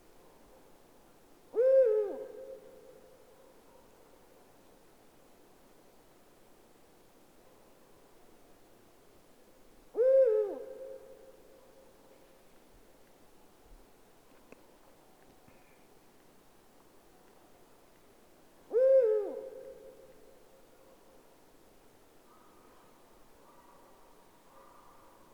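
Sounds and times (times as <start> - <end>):
Eurasian eagle-owl deep hoots: 10.0 - 11.0, 18.7 - 19.9.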